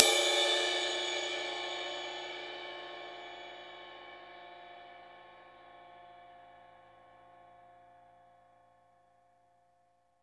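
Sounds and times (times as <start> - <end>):
dry drums: 0.0 - 1.2.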